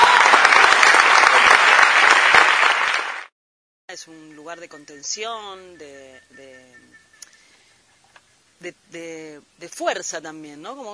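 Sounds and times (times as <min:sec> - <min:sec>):
crowd applauding: 0:00.0 - 0:03.3
speech: 0:04.0 - 0:07.0, 0:08.6 - 0:10.9.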